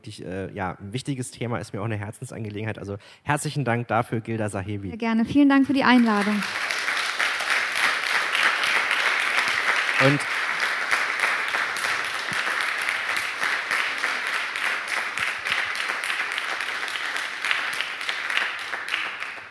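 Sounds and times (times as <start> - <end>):
speech: 0.0 - 6.7, 10.0 - 10.3
audience applause: 5.7 - 19.5.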